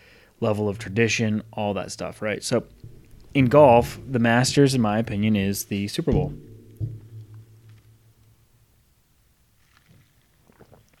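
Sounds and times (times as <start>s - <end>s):
speech: 0.4s - 7.0s
soft thump: 2.7s - 8.2s
person taking a big gulp of drink: 9.7s - 10.9s.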